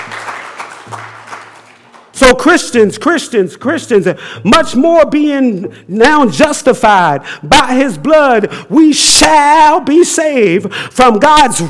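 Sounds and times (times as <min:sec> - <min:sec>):
audience clapping: 0:00.0 - 0:02.2
speech: 0:02.2 - 0:11.6.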